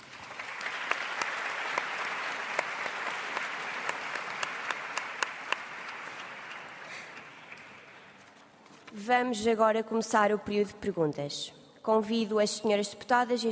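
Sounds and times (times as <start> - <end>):
applause from assembly deputies: 0.0 - 8.2
speech: 9.0 - 13.5.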